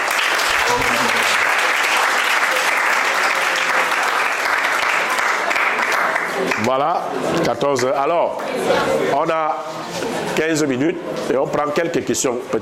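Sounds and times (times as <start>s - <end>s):
audience applause: 0.0s - 6.7s
speech: 6.7s - 12.6s.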